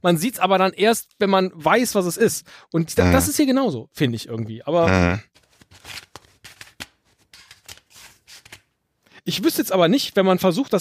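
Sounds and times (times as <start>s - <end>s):
speech: 0.0s - 6.1s, 9.3s - 10.7s
deck of playing cards shuffled by hand: 5.4s - 8.7s.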